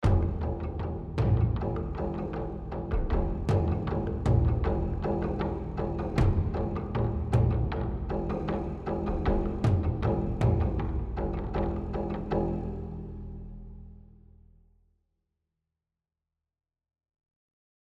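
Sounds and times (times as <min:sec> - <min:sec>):
rage combat music: 0:00.0 - 0:13.4.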